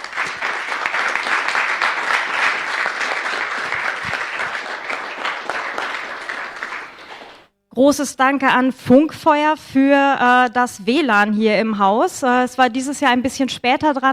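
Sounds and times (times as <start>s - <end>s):
audience applause: 0.0s - 7.5s
speech: 7.8s - 14.1s.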